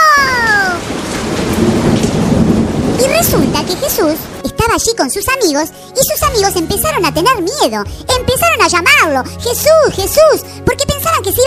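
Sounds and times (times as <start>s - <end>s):
thunder: 0.0s - 4.4s
rain: 0.0s - 5.9s
speech: 3.3s - 11.4s.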